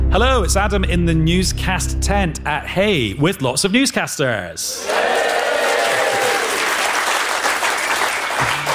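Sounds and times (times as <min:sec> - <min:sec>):
speech: 0:00.1 - 0:05.4
audience applause: 0:04.8 - 0:08.7.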